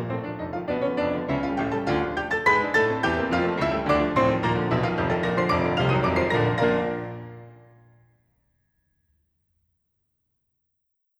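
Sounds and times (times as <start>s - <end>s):
piano piece for four hands: 0.0s - 8.0s.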